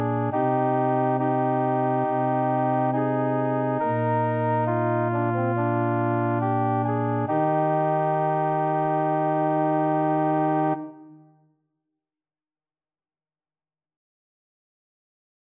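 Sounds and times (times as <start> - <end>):
organ: 0.0 - 10.9.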